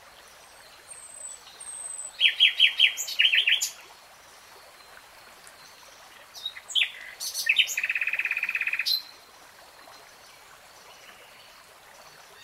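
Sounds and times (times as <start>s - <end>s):
nightingale song: 0.1s - 12.4s.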